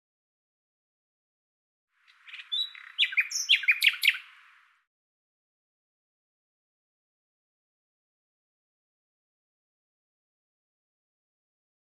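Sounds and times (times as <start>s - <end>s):
common nightingale singing: 2.0s - 4.8s.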